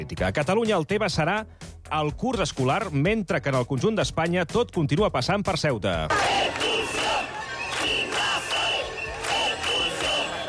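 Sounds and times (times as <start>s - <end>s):
speech: 0.0s - 6.7s
protest crowd chanting a slogan: 6.1s - 10.4s.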